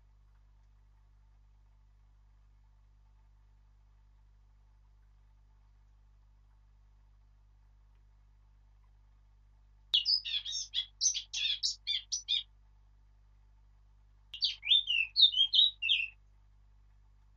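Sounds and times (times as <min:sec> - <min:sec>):
Sylvia atricapilla: 0:10.0 - 0:12.4, 0:14.4 - 0:16.2.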